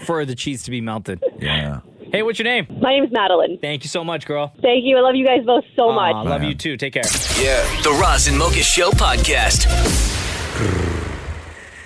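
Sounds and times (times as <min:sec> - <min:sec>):
speech: 0:00.1 - 0:10.7
person imitating a cat purring: 0:10.6 - 0:11.2.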